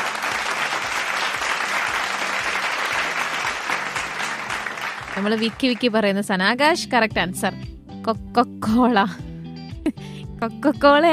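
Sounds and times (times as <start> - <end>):
audience clapping at a live quiz event: 0.0 - 6.2
speech: 5.2 - 9.2, 9.9 - 11.1.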